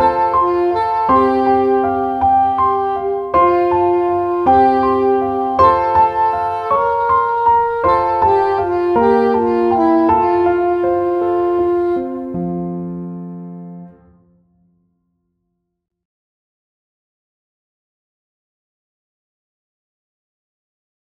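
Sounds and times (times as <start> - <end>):
flute: 0.0 - 14.0
French horn: 0.0 - 14.4
clarinet: 0.0 - 14.4.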